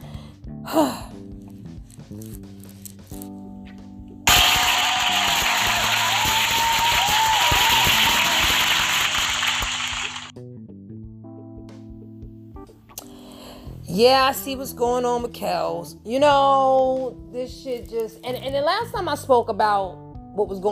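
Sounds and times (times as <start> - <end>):
speech: 0.7 - 1.1, 14.0 - 20.7
crowd applause: 4.3 - 10.3.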